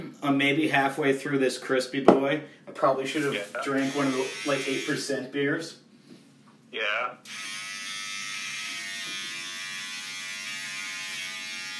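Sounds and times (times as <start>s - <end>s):
speech: 0.2s - 5.8s, 6.7s - 7.6s
electric hair clipper buzzing: 3.6s - 5.1s, 7.2s - 11.7s.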